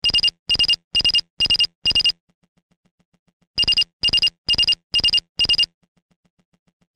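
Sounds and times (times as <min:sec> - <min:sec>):
ringtone: 0:00.0 - 0:02.2, 0:03.6 - 0:05.7.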